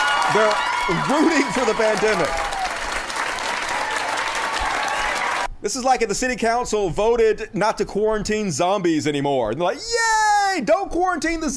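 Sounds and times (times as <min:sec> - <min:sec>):
crowd applauding and cheering a city council vote: 0:00.0 - 0:05.5
speech: 0:00.3 - 0:02.4, 0:05.6 - 0:11.5.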